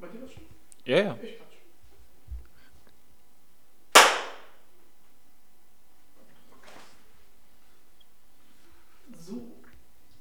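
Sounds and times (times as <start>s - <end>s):
speech: 0.2s - 1.4s
hand clap for recording sync: 4.0s - 4.6s.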